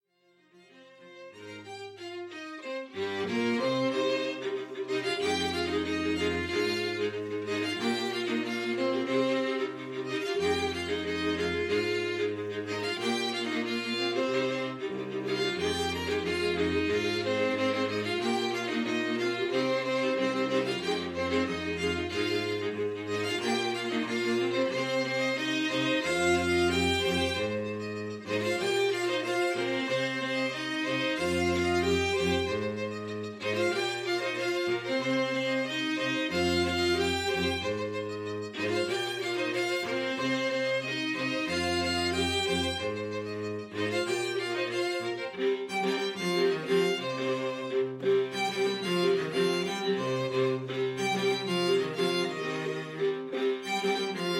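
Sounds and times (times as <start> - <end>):
strings: 0.0 - 54.3.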